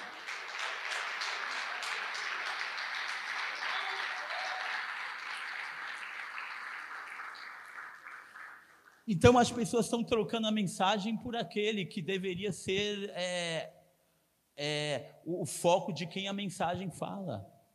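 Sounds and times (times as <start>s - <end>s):
crowd applause: 0.0s - 9.0s
speech: 9.1s - 13.8s, 14.6s - 17.5s.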